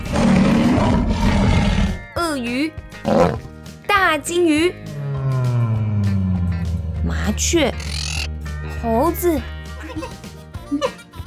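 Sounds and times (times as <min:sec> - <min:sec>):
tiger roar: 0:00.0 - 0:02.0, 0:03.0 - 0:03.5, 0:04.9 - 0:08.3
speech: 0:02.7 - 0:03.4, 0:04.1 - 0:04.9, 0:07.2 - 0:08.0, 0:08.8 - 0:10.9.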